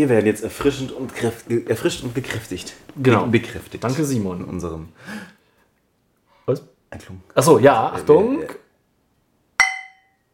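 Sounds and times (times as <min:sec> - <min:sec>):
speech: 0:00.0 - 0:05.4, 0:06.5 - 0:08.6
bottles clinking together in a toast: 0:09.6 - 0:10.2.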